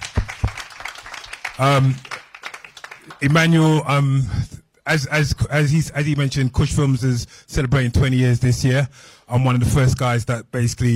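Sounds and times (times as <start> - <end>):
audience applause: 0.0 - 3.4
speech: 1.6 - 2.2, 3.2 - 10.9.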